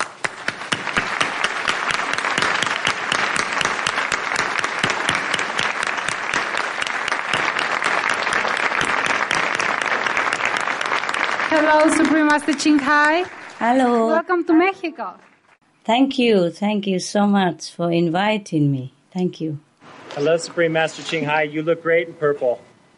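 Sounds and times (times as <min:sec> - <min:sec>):
audience applause: 0:00.0 - 0:14.1
speech: 0:12.0 - 0:15.3, 0:15.9 - 0:22.7.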